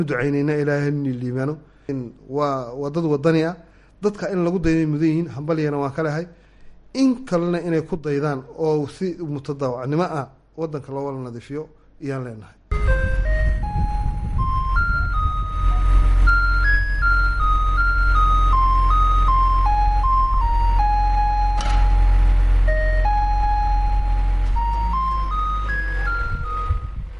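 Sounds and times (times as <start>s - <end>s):
speech: 0.0s - 12.6s
electronic signal tune of a sanitation truck in Djibouti city: 12.7s - 27.1s
low steady rumble: 12.7s - 27.1s.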